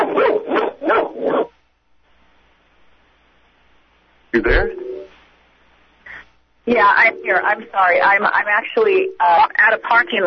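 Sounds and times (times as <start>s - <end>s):
dog barking at another dog: 0.0s - 1.5s
speech: 4.4s - 4.8s, 6.7s - 10.2s.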